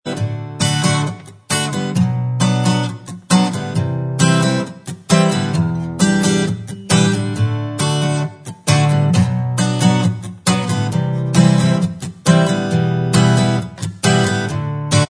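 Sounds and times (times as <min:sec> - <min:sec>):
acoustic instrumental backing track: 0:00.0 - 0:15.0.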